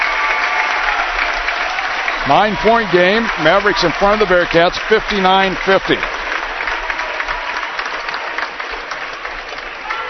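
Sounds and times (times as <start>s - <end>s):
basketball fans applauding: 0.0s - 10.0s
speech: 2.3s - 6.2s.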